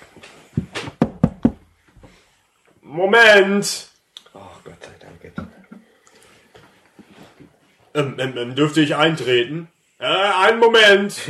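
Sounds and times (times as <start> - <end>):
soft thumps and shuffles: 0.0 - 2.4, 6.3 - 7.9
knocking on a wooden wagon: 0.6 - 1.6
speech: 2.9 - 3.9, 8.0 - 11.2.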